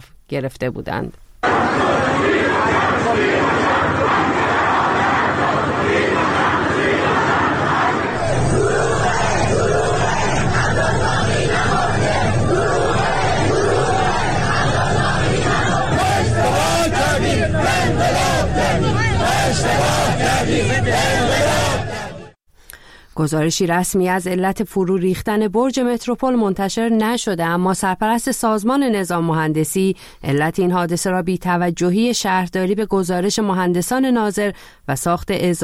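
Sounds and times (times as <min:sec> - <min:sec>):
speech: 0:00.3 - 0:04.5, 0:23.2 - 0:35.6
street protest crowd chanting slogans in Abadan: 0:01.4 - 0:22.4.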